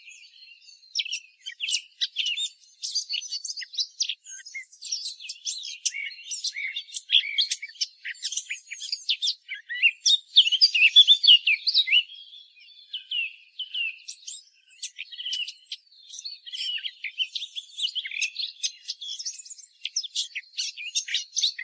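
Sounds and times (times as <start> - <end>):
Eurasian blackcap song: 0.0 - 21.6.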